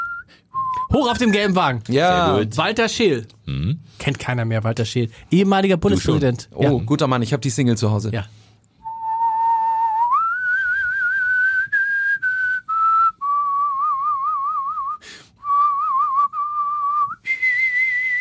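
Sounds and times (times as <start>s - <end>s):
person whistling a slow film melody: 0.0s - 1.4s, 8.8s - 18.2s
speech: 0.9s - 8.5s.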